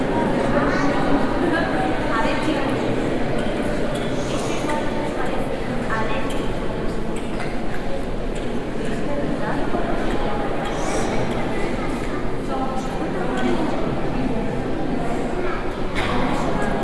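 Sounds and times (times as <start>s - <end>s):
murmur of many voices in Reina Sofía Museum: 0.0s - 16.8s.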